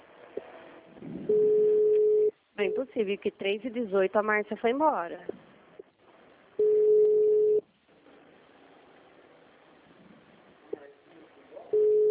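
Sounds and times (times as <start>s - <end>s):
telephone line tone: 1.3s - 2.8s, 6.6s - 7.6s, 11.8s - 12.0s
speech: 2.6s - 5.4s.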